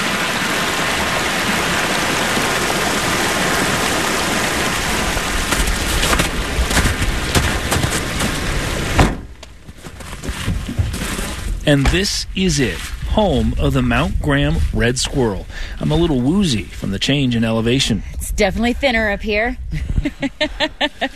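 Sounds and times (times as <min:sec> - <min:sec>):
mountain stream of snowmelt cascading: 0:00.0 - 0:09.0, 0:10.9 - 0:17.8
speech: 0:11.7 - 0:21.1
laughter: 0:19.7 - 0:21.1.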